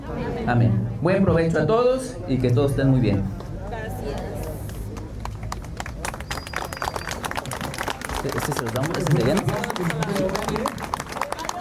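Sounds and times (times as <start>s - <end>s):
speech: 0.1s - 3.4s, 8.2s - 11.0s
crowd clapping: 3.4s - 11.5s.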